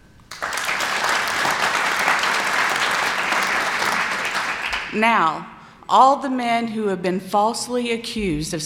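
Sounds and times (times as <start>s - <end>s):
men in audience clapping: 0.3s - 5.0s
speech: 4.9s - 8.6s.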